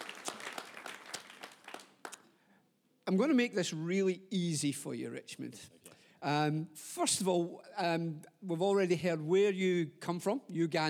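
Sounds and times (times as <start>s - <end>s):
round of applause: 0.0s - 2.3s
speech: 3.1s - 10.8s.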